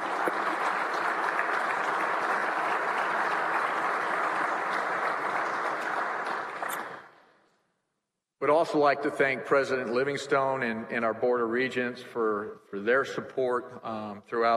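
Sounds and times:
crowd applause: 0.0 - 7.2
speech: 8.5 - 14.5.

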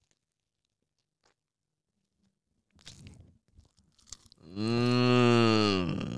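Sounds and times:
crunchy wet chewing of a chicken Caesar wrap: 2.8 - 4.4
loud sustained low humming groan from a voice: 4.5 - 6.1.

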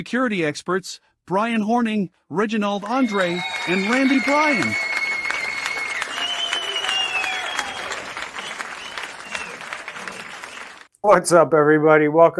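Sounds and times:
speech: 0.0 - 4.9, 11.0 - 12.3
crowd clapping: 2.8 - 10.9
whistles and cheers: 2.8 - 10.9.

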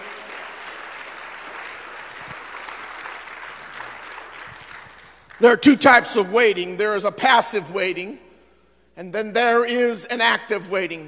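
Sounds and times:
audience hand clapping applause: 0.0 - 5.6
speech: 5.4 - 8.2, 9.0 - 11.0.

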